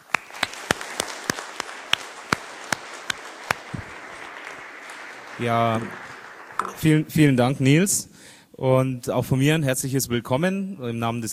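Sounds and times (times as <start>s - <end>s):
audience applause: 0.0s - 7.1s
speech: 5.4s - 6.1s, 6.7s - 11.3s.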